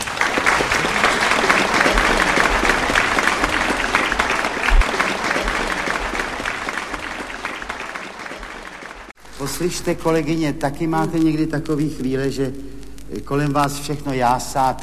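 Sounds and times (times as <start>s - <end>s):
audience applause: 0.0s - 9.6s
speech: 9.5s - 14.8s.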